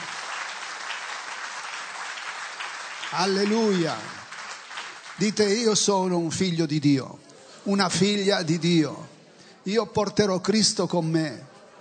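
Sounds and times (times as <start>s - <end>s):
congregation at an Italian worship service clapping: 0.0s - 6.5s
speech: 3.1s - 4.2s, 5.2s - 11.5s.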